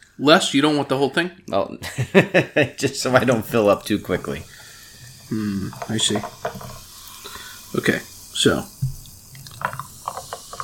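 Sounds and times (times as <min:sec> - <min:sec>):
speech: 0:00.2 - 0:04.6, 0:05.3 - 0:06.8, 0:07.7 - 0:08.8
laughter: 0:01.8 - 0:03.4
canned drink poured into a glass: 0:03.2 - 0:10.6.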